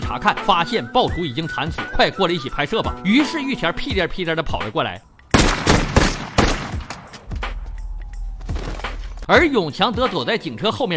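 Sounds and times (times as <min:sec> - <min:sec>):
speech: 0:00.1 - 0:05.1, 0:09.3 - 0:10.9
gunfire in film scene: 0:05.3 - 0:07.7
low rumble: 0:06.3 - 0:09.3.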